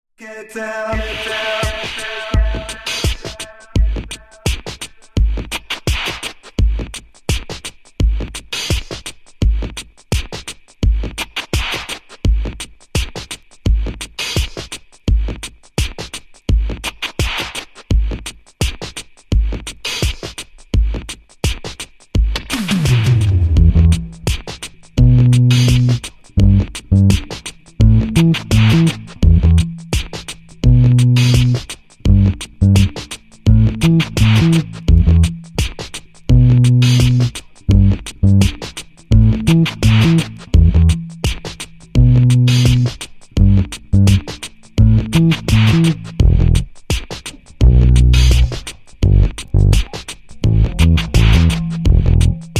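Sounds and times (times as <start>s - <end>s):
beats with bass: 0.9s - 52.5s.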